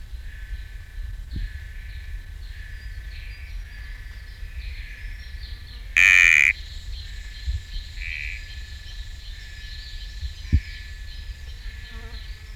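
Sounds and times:
sticky frog ringing note: 6.0s - 6.5s
high-pitched insect drone: 6.0s - 12.5s.

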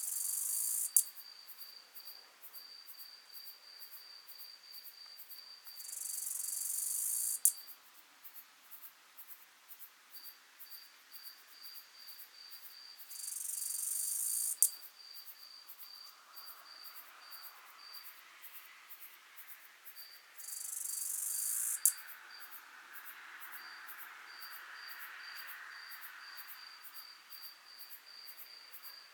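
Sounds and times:
Acrometopa servillea bush-cricket song: 0.0s - 1.8s, 5.3s - 7.7s, 10.2s - 16.0s, 20.0s - 22.6s
steady thin insect whine: 0.0s - 7.8s, 10.2s - 29.1s.

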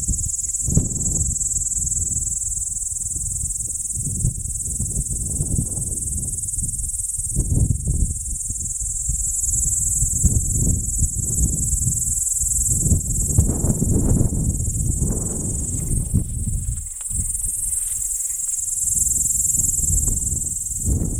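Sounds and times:
P. capensis insect high-pitched buzzing near Arniston: 0.0s - 21.1s.

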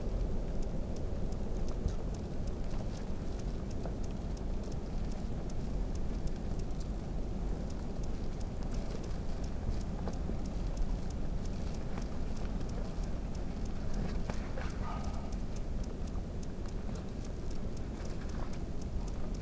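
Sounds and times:
tiny ticker in Grevillia in Western Australia: 0.0s - 19.4s.

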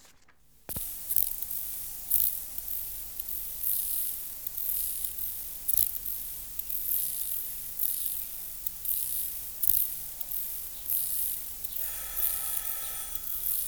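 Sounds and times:
Chorthippus oschei grasshopper song: 0.6s - 13.6s.

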